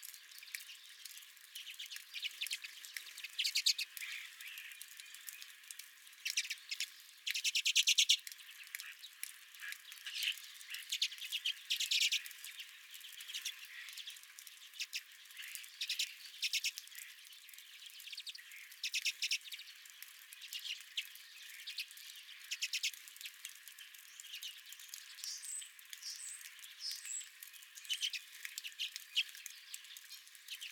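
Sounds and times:
redpoll flock chattering: 0:00.1 - 0:05.6, 0:06.2 - 0:30.6.

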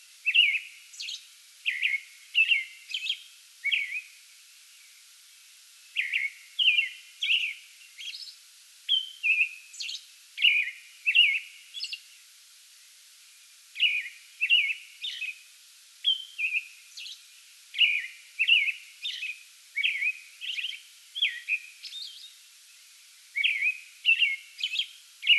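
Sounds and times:
American robin whistled song: 0:00.2 - 0:04.2, 0:05.9 - 0:12.0, 0:13.8 - 0:15.4, 0:16.0 - 0:22.4, 0:23.3 - 0:25.3.

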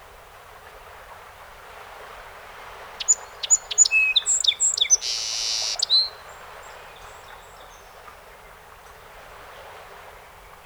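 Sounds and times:
song sparrow song: 0:02.8 - 0:08.1.

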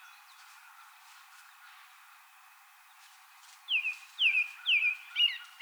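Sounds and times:
American robin song with whistled caroling phrases: 0:03.7 - 0:05.5.

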